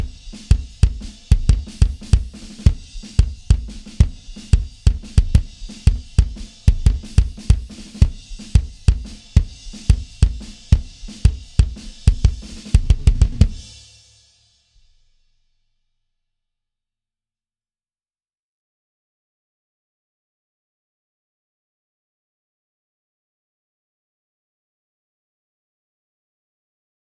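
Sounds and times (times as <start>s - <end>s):
bass drum: 0.0s - 13.8s.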